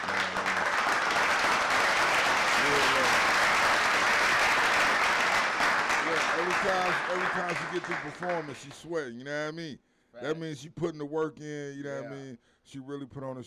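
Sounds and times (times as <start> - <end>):
audience round of applause: 0.0 - 8.8
speech: 6.7 - 13.4.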